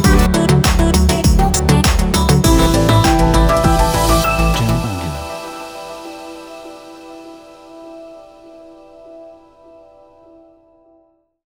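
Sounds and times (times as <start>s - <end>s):
uplifting future bass music: 0.0s - 7.2s.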